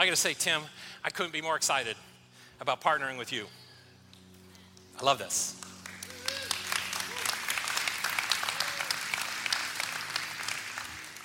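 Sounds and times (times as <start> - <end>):
speech: 0.0 - 3.6, 5.0 - 5.7
audience applause: 5.6 - 11.2.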